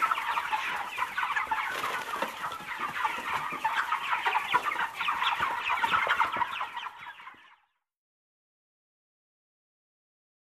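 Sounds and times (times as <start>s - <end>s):
birds calling in dense chatter: 0.0s - 7.7s.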